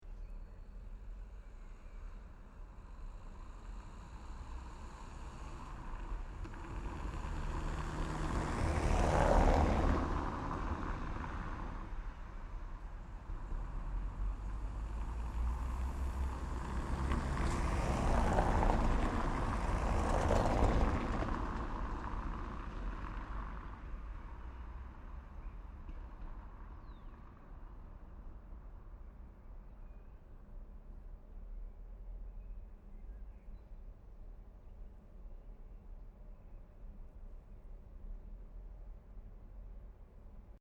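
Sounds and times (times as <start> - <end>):
car passing on cobblestone road in Paris France: 3.7 - 12.6, 13.4 - 25.3.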